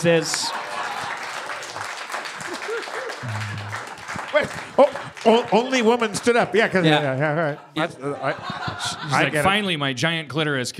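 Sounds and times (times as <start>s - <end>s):
speech: 0.0s - 0.7s, 3.2s - 10.7s
audience applause: 0.2s - 6.8s
laughter: 0.4s - 1.6s, 2.2s - 9.5s.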